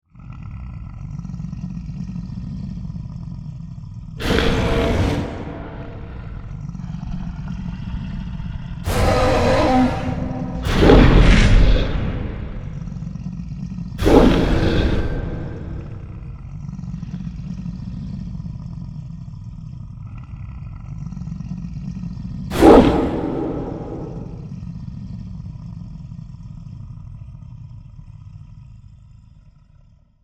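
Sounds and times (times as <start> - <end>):
monster attacking: 4.2 - 13.2, 14.0 - 16.5, 22.5 - 24.6.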